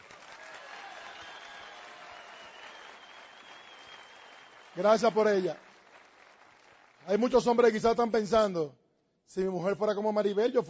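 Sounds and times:
audience applause: 0:00.0 - 0:07.5
speech: 0:04.8 - 0:05.7, 0:07.1 - 0:10.6.

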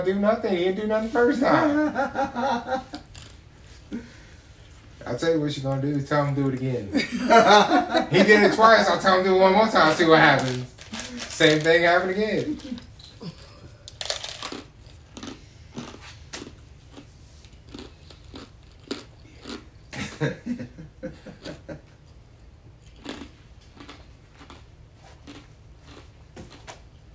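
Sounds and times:
speech: 0:00.0 - 0:03.0, 0:03.9 - 0:04.2, 0:05.0 - 0:12.8, 0:20.2 - 0:20.7
laughter: 0:01.3 - 0:03.0, 0:06.9 - 0:08.8, 0:20.0 - 0:21.9
crunching ice while chewing: 0:13.9 - 0:19.9, 0:22.8 - 0:26.6.

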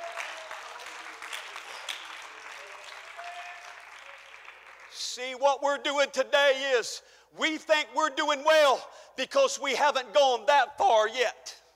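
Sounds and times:
audience clapping hands: 0:00.0 - 0:05.0
speech: 0:05.1 - 0:11.6.

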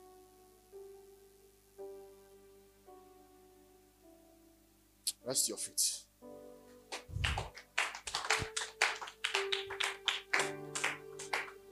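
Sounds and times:
speech: 0:05.2 - 0:06.1
audience clapping: 0:06.9 - 0:11.6.

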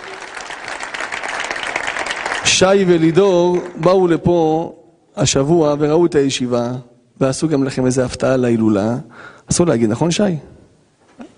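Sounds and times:
applause: 0:00.0 - 0:03.8
speech: 0:02.4 - 0:10.6.

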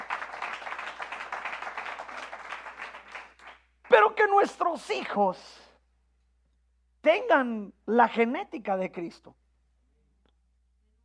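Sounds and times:
audience applause: 0:00.0 - 0:03.6
speech: 0:03.9 - 0:05.6, 0:07.0 - 0:09.4.

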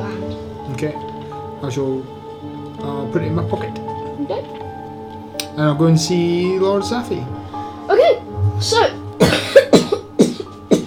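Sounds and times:
speech: 0:00.8 - 0:02.2, 0:02.8 - 0:04.7, 0:05.6 - 0:09.7
cough: 0:09.2 - 0:10.8.

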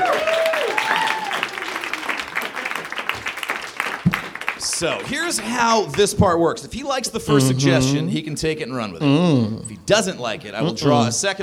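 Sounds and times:
whoop or whistle of cheering: 0:00.0 - 0:02.1
crowd applause: 0:00.0 - 0:06.1
speech: 0:04.8 - 0:11.4.

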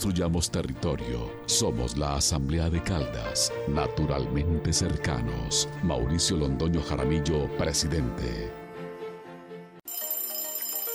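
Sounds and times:
speech: 0:00.0 - 0:08.6
alarm ringing: 0:09.9 - 0:10.9.

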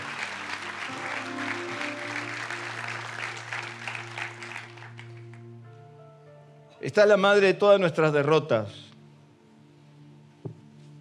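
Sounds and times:
audience applause: 0:00.0 - 0:05.4
speech: 0:06.8 - 0:08.8.

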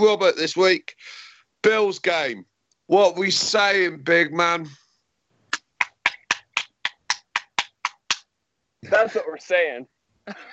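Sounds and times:
speech: 0:00.0 - 0:04.8, 0:08.8 - 0:10.5
hand clapping: 0:05.5 - 0:08.3.

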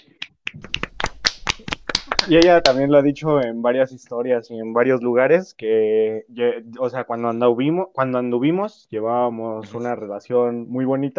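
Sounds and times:
scattered hand clapping from a few people: 0:00.0 - 0:03.4
speech: 0:02.3 - 0:11.1.

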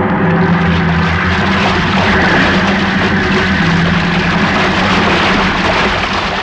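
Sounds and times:
huge ocean wave crashing over a ship: 0:00.1 - 0:06.4.

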